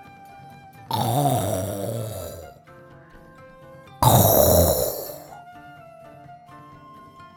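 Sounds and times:
old man snoring: 0.9s - 2.6s, 4.0s - 5.4s.

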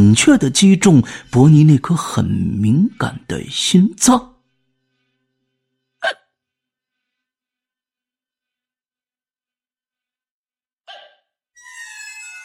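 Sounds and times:
speech: 0.0s - 4.3s
person hiccuping: 6.0s - 6.3s, 10.9s - 11.2s.

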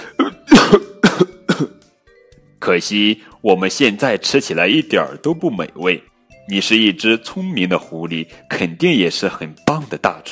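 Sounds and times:
human voice acting out loud hoarse coughing: 0.0s - 1.8s
speech: 2.6s - 10.2s.

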